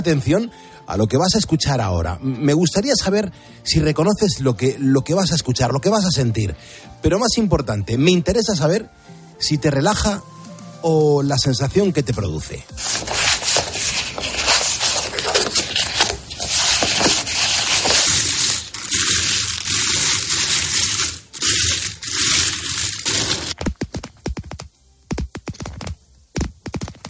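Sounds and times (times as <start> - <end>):
speech: 0.0 - 13.2
coins being moved: 12.8 - 23.6
person shuffling cards: 12.8 - 27.0
fingernails tapping on a card mat: 23.6 - 27.0.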